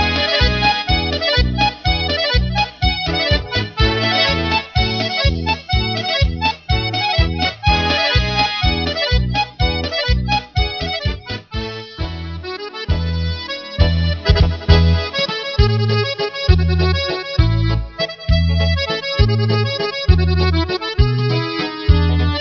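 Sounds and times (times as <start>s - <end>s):
musette accordion mix: 0.0s - 22.4s.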